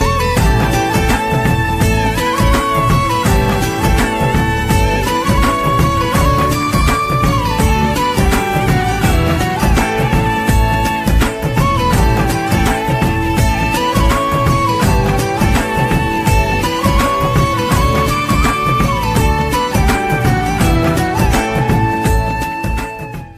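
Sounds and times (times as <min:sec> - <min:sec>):
flute ringtone: 0:00.0 - 0:23.3.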